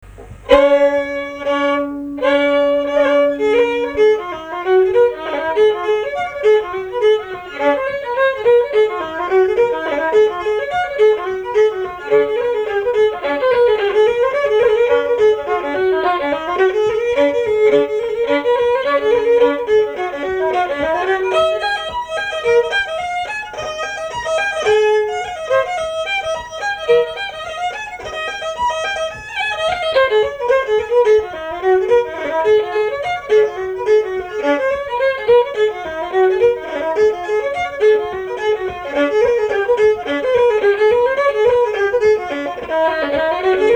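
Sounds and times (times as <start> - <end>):
reel in D major: 0.0 - 43.7.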